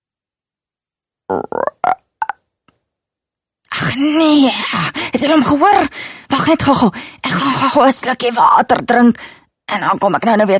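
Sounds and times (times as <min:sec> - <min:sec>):
voice imitating a frog croak: 0:01.3 - 0:02.5
speech: 0:03.9 - 0:10.5.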